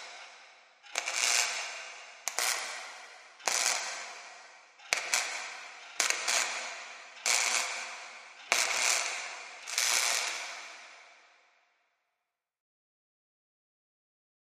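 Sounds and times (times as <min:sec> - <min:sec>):
arc welding: 0:00.0 - 0:10.9.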